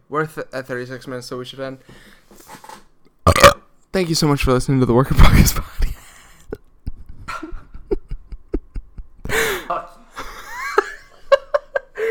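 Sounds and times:
speech: 0.1s - 2.6s, 3.3s - 5.8s
loud burp: 3.3s - 3.7s
people giggling: 6.0s - 9.4s, 10.2s - 12.0s.

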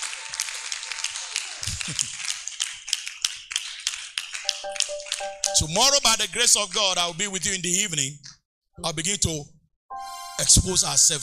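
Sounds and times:
crowd clapping hands: 0.0s - 6.2s
speech: 1.8s - 2.2s, 4.6s - 9.5s, 10.4s - 11.2s.

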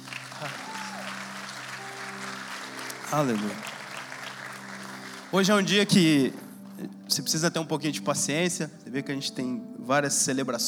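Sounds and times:
audience applauding: 0.0s - 7.1s
speech: 3.1s - 3.7s, 5.3s - 10.6s.

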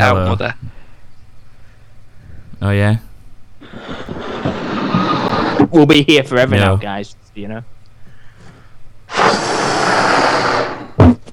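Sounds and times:
speech: 0.0s - 0.7s, 2.6s - 3.1s, 5.7s - 7.7s
blowing up a balloon: 3.6s - 5.7s, 9.1s - 11.3s.

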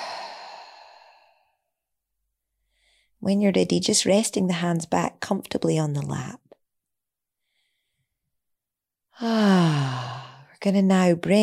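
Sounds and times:
slow breath out during a guided meditation: 0.0s - 1.7s, 7.4s - 8.1s, 9.2s - 10.5s
speech: 3.2s - 6.4s, 9.2s - 11.4s.

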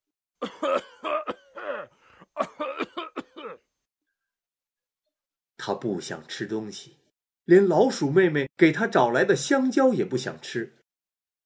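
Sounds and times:
voice imitating an elephant coughing: 0.4s - 3.7s
speech: 5.7s - 10.8s.

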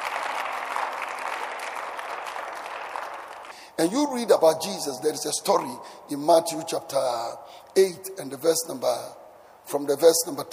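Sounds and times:
crowd audience clapping hands: 0.0s - 3.6s
speech: 3.8s - 10.5s.

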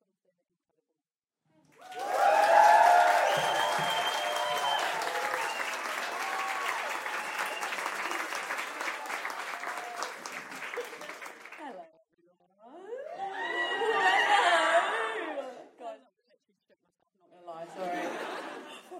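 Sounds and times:
audience applause at a live podcast launch event: 1.8s - 11.8s
laughter: 2.0s - 11.9s, 13.0s - 15.8s, 17.6s - 18.9s.

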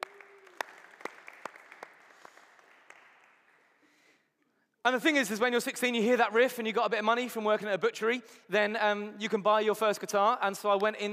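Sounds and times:
audience applause: 0.0s - 3.8s
speech: 4.9s - 11.1s.

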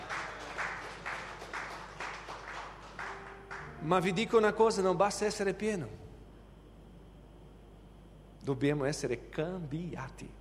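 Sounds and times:
audience applauding: 0.0s - 3.8s
speech: 3.8s - 6.0s, 8.5s - 10.3s.

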